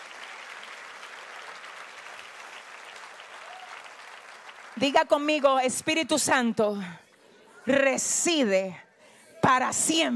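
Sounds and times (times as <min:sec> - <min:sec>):
audience applause: 0:00.0 - 0:05.4
speech: 0:04.8 - 0:07.0, 0:07.6 - 0:08.8, 0:09.4 - 0:10.1.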